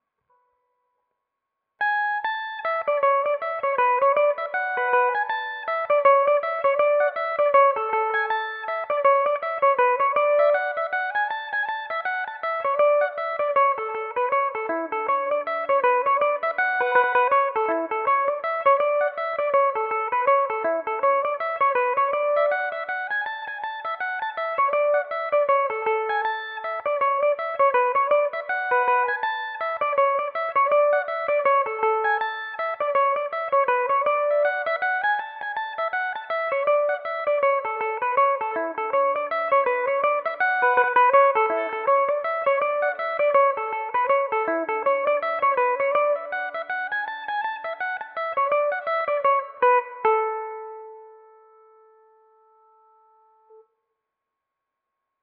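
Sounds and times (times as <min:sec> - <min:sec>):
Irish mandolin in A major: 0:01.8 - 0:53.7.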